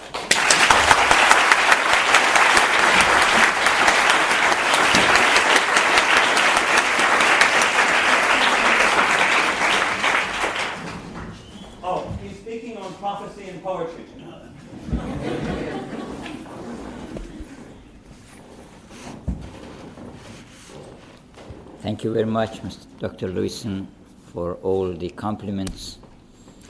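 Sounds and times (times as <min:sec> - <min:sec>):
audience applause: 0:00.0 - 0:11.4
laughter: 0:14.7 - 0:17.7
speech: 0:22.0 - 0:26.0.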